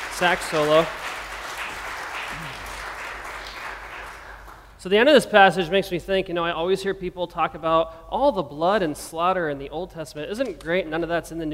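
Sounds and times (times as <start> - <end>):
applause: 0.0 - 4.8
speech: 0.2 - 1.0, 4.8 - 11.5.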